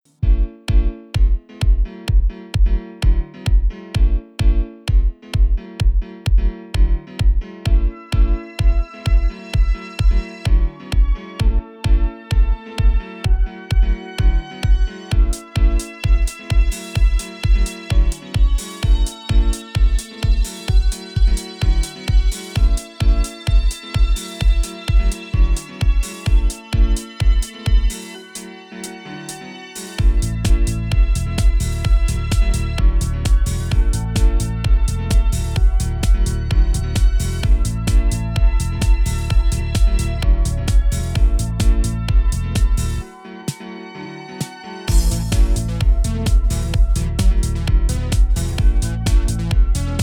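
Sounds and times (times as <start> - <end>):
aerobic dance music at 432 Hz: 0.0 - 50.0.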